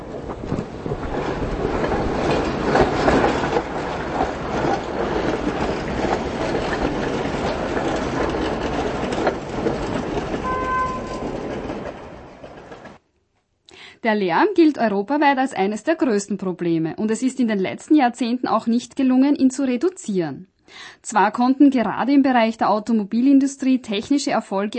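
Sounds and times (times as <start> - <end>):
tram rattling over track switches at a crossing: 0.0 - 13.0
speech: 14.0 - 24.7.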